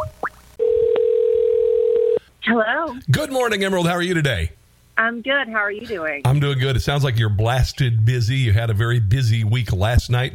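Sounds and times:
telephone dial tone: 0.6s - 2.2s
speech: 2.5s - 10.3s.

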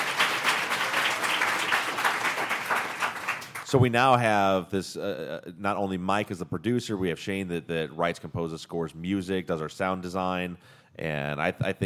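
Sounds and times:
audience applause: 0.0s - 3.7s
speech: 3.7s - 11.8s.

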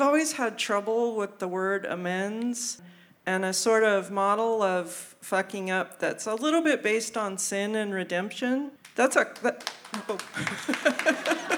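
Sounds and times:
speech: 0.1s - 11.5s
audience applause: 9.6s - 11.5s
laughter: 10.0s - 11.5s.

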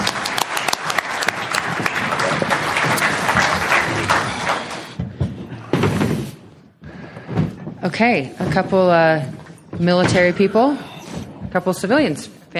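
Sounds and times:
audience applause: 0.0s - 5.0s
speech: 8.0s - 10.9s, 11.6s - 12.5s.

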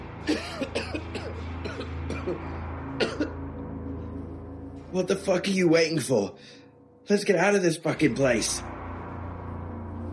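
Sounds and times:
speech: 0.2s - 0.7s, 4.9s - 8.7s
man coughing: 0.3s - 3.4s.

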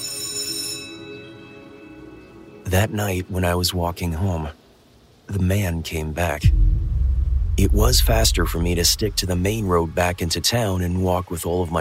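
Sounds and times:
school bell ringing: 0.0s - 1.6s
speech: 2.7s - 4.6s, 5.3s - 6.8s, 7.6s - 11.7s.

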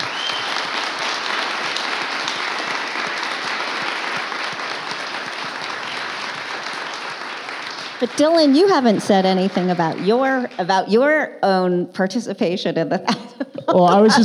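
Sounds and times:
audience applause: 0.0s - 11.2s
speech: 8.0s - 14.2s.

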